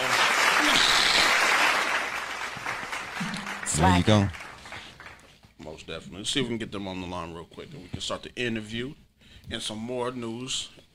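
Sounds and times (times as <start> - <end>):
hand clap sound effect: 0.7 - 5.1
speech: 3.8 - 4.4, 5.9 - 10.8.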